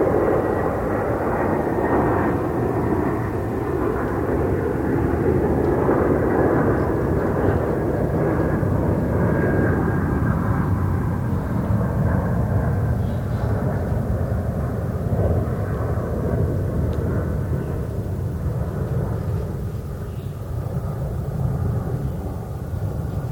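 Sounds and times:
Airbus jet airliner flying over: 0.0 - 23.3
city ambience: 0.0 - 23.3.

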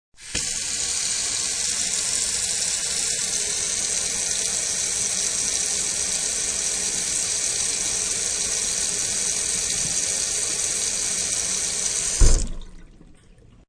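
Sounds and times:
kitchen sink water running: 0.2 - 13.6.

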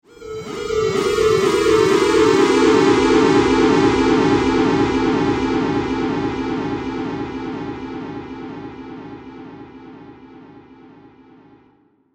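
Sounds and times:
twisted theremin: 0.0 - 9.6.

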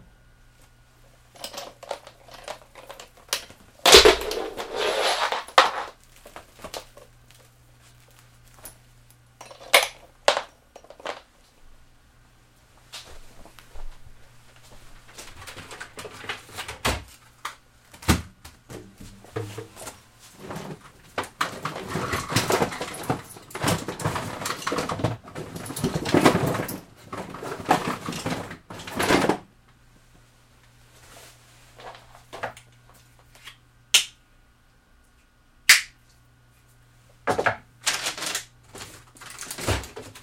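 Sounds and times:
backstage rummaging in a theater: 1.3 - 11.3, 12.9 - 29.5, 37.3 - 40.2.

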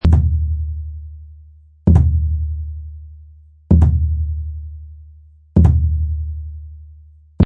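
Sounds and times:
low hand drum beat: 0.0 - 0.9, 1.8 - 2.9, 3.7 - 4.8, 5.6 - 6.6.

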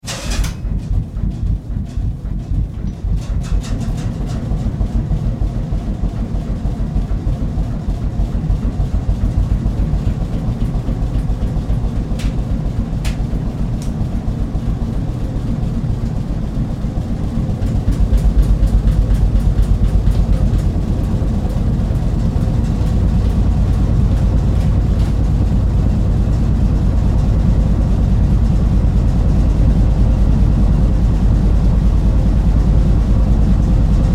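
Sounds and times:
ship engine starting and running: 0.0 - 34.1.

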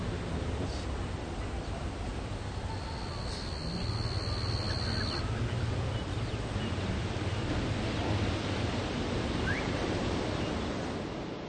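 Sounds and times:
slow smooth waves coming in on an island beach: 0.0 - 11.4
distant tropical birds: 0.6 - 10.9
cicadas: 1.4 - 7.3.

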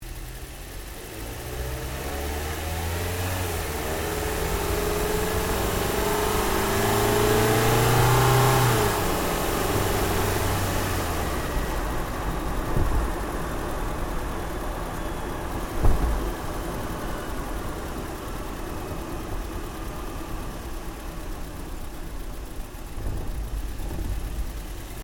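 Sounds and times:
Toyota Yaris car engine driving: 0.0 - 25.0.

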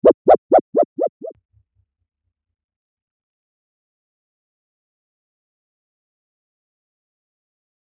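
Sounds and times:
toy wobble board: 0.0 - 1.3.

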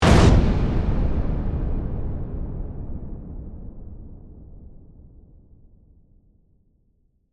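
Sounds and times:
dark shattering hit burst: 0.0 - 4.8.

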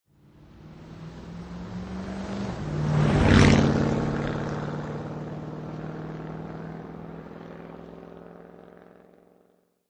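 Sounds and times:
Ford truck driving by right to left: 0.4 - 8.4.

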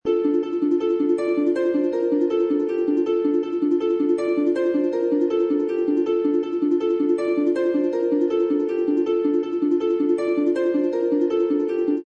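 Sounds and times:
harp loop in D minor: 0.0 - 12.0.

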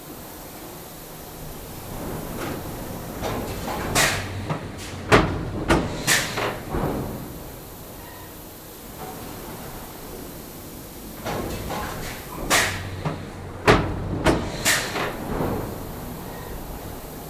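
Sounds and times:
pneumatic hiss: 1.1 - 17.2
pneumatic factory press stamping: 2.4 - 8.4, 11.2 - 16.7.

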